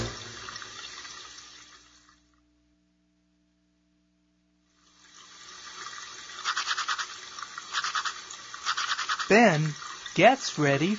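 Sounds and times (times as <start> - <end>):
toothbrush brushing teeth: 6.3 - 10.0
speech: 9.3 - 10.9.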